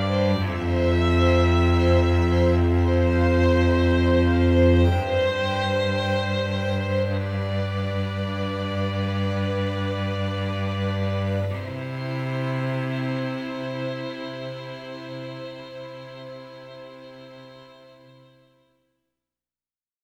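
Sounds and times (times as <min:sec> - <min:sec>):
piano: 0:00.0 - 0:15.7
strings: 0:00.0 - 0:18.6.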